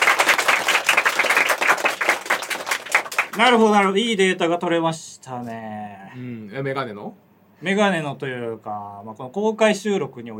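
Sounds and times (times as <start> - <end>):
audience applause at live recording: 0.0 - 3.5
speech: 3.4 - 10.3.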